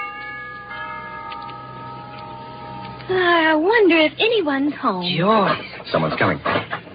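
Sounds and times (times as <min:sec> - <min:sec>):
doorbell ringing: 0:00.0 - 0:03.5
speech: 0:03.1 - 0:06.8.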